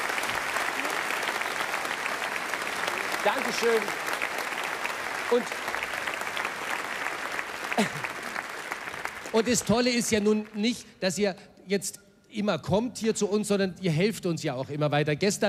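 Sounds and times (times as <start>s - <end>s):
audience applause for former bridal couples: 0.0s - 10.6s
speech: 3.2s - 4.1s, 5.3s - 5.6s, 7.8s - 8.0s, 9.3s - 15.4s.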